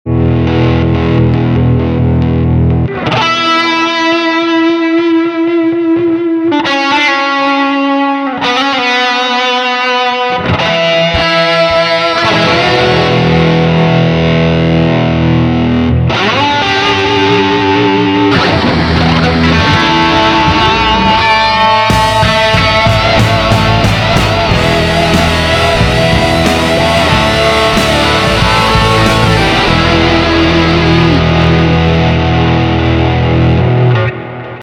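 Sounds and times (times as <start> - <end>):
guitar: 0.0 - 34.6.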